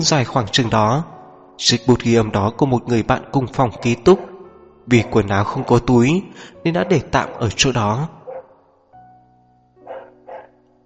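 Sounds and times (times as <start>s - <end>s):
speech: 0.0s - 8.2s
neighbor's dog barking: 3.7s - 7.6s, 8.2s - 8.6s, 9.8s - 10.6s.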